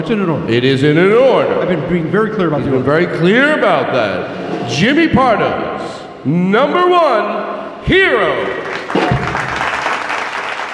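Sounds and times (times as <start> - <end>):
speech: 0.0 - 9.1
audience applause: 8.6 - 10.7.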